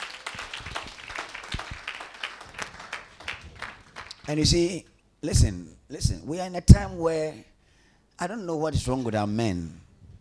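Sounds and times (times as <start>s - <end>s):
audience clapping: 0.0s - 4.4s
speech: 4.3s - 7.5s, 8.2s - 9.8s.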